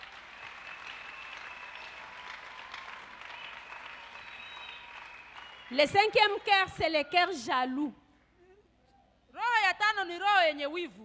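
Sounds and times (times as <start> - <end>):
congregation clapping and cheering to acclaim the Lord during a church service: 0.0 - 7.0
speech: 5.7 - 8.0, 10.1 - 11.0.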